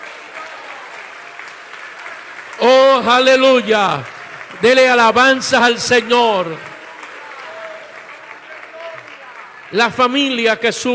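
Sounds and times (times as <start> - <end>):
congregation applauding during a church service: 0.0 - 10.9
speech: 2.6 - 6.7, 9.7 - 10.9.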